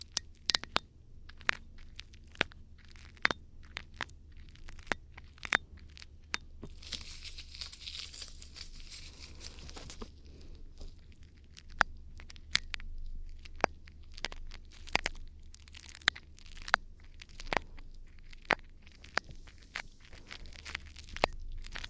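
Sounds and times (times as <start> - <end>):
ear cleaning crackly clicks and taps: 0.0 - 21.8
low hum: 0.0 - 21.8
scratchy rustle: 1.5 - 11.7, 16.6 - 21.8.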